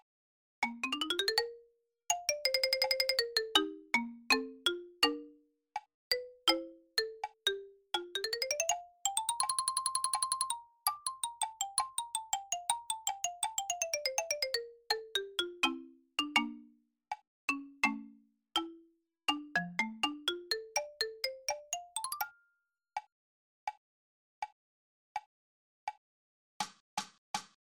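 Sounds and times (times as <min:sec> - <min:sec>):
percussion: 0:00.6 - 0:01.6, 0:02.1 - 0:05.4, 0:06.1 - 0:16.8, 0:17.5 - 0:22.4, 0:26.6 - 0:27.6.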